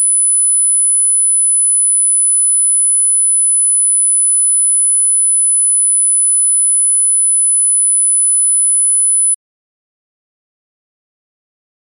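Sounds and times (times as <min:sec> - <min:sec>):
10 Hz sine tone in right channel: 0:00.0 - 0:09.4.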